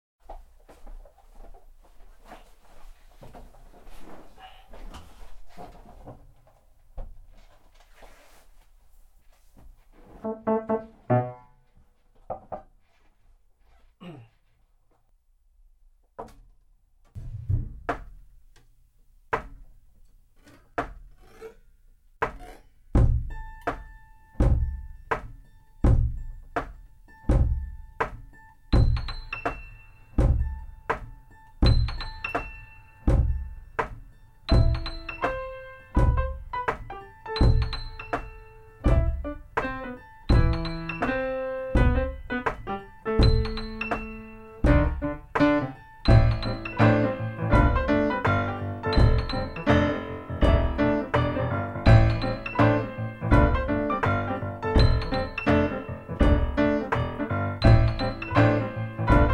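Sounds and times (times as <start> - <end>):
instrumental piano music: 10.2 - 11.7, 23.0 - 59.3.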